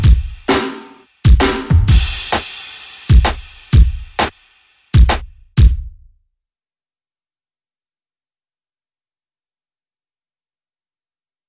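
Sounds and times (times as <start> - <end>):
drums: 0.0 - 6.0.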